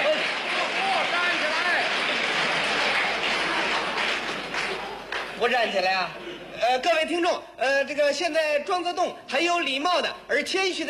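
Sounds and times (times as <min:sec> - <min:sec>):
stadium crowd cheering and applauding: 0:00.0 - 0:05.4
speech: 0:05.5 - 0:10.8.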